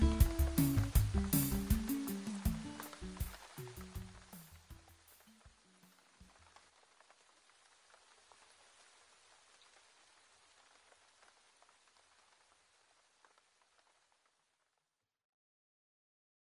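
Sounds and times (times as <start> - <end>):
rainy day guitar music: 0.0 - 4.8.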